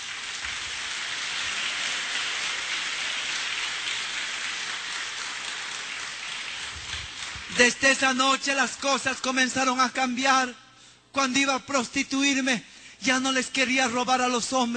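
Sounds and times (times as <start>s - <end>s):
audience applause: 0.0s - 7.8s
speech: 7.5s - 14.7s.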